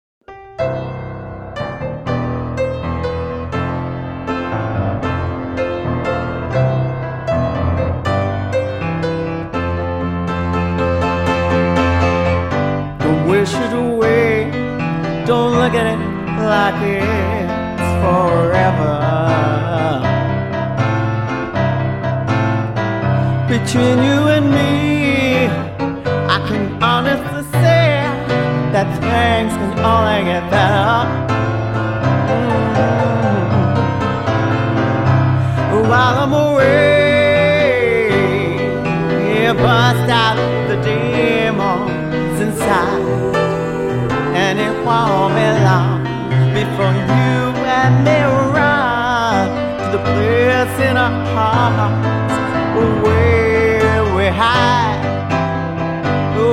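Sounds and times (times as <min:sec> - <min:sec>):
blues music: 0:00.2 - 0:56.5.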